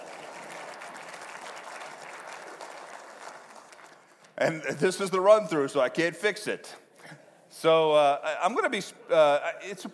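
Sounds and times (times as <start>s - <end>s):
audience applause: 0.0s - 4.2s
speech: 4.4s - 6.8s, 7.6s - 9.9s.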